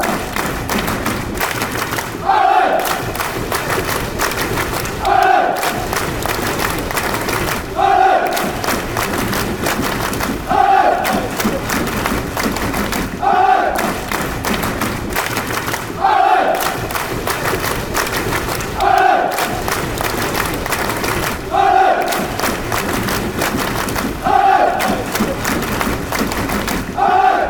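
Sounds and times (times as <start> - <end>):
Ireland fans chanting: 0.0 - 27.4
Ireland fans clapping: 0.0 - 27.4.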